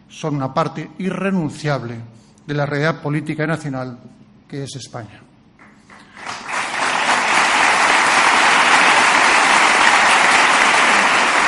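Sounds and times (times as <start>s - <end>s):
speech: 0.1s - 5.2s
audience applause: 5.7s - 11.4s.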